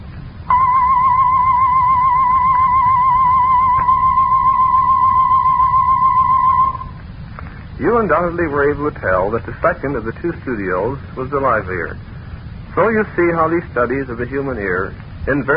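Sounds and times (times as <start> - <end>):
pitch-modulated test tones: 0.0 - 7.2
speech: 7.9 - 12.1, 12.8 - 15.5.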